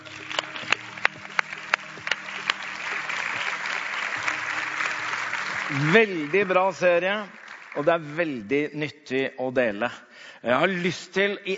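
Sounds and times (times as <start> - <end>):
audience clapping: 0.0 - 8.5
speech: 5.7 - 11.5.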